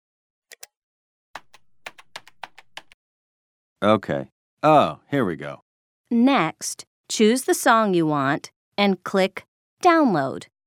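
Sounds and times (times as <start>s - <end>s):
typing a search on a computer keyboard: 0.5s - 0.7s, 1.4s - 3.0s
speech: 3.8s - 10.5s.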